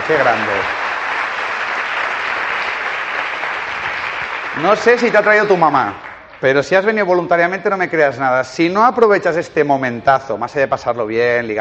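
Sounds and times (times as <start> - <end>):
audience applause: 0.0 - 6.8
speech: 0.1 - 0.8, 4.6 - 11.5.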